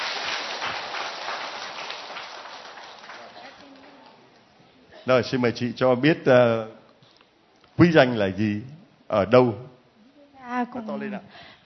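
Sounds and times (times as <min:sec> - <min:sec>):
applause: 0:00.0 - 0:04.2
speech: 0:05.0 - 0:06.8, 0:07.8 - 0:09.7, 0:10.6 - 0:11.6.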